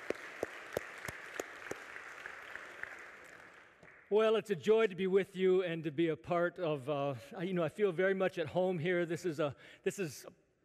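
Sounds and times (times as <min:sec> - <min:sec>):
audience applause: 0:00.0 - 0:04.0
speech: 0:04.1 - 0:10.4.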